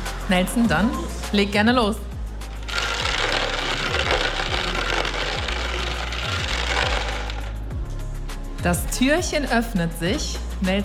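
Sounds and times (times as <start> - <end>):
speech: 0.3 - 2.1, 8.6 - 10.8
balls rattling inside a turning lottery drum: 2.5 - 7.6.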